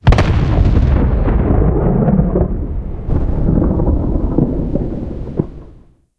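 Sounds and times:
distant cannon shot tail: 0:00.0 - 0:05.9.

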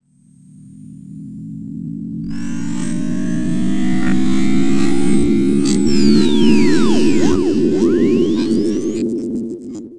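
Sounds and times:
warning tone pitching up: 0:02.3 - 0:09.0.

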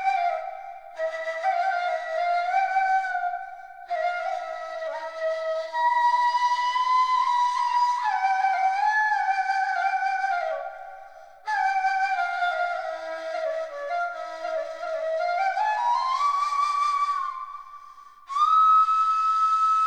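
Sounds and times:
ney flute solo: 0:00.0 - 0:19.8.

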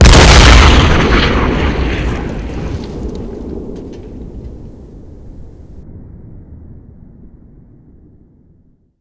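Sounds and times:
artillery fire: 0:00.0 - 0:05.8.

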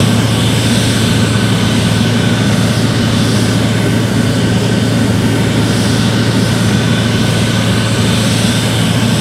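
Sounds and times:
jet engines heard from the rear: 0:00.0 - 0:09.2.

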